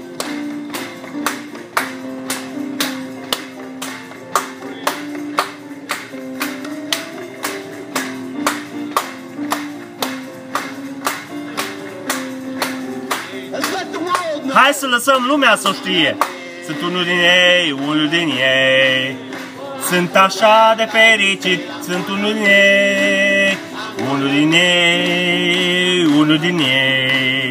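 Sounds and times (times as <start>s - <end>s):
audience clapping in rhythm: 0.0s - 27.4s
sustained music: 0.0s - 27.4s
speech: 14.7s - 19.2s, 19.9s - 23.2s, 24.2s - 27.4s.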